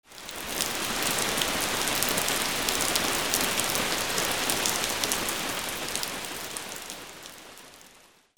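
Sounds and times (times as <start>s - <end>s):
rain: 0.0s - 8.3s.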